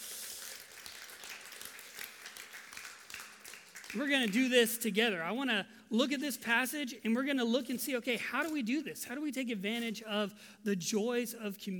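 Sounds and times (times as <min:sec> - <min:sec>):
crowd applauding: 0:00.0 - 0:04.5
speech: 0:03.9 - 0:11.7.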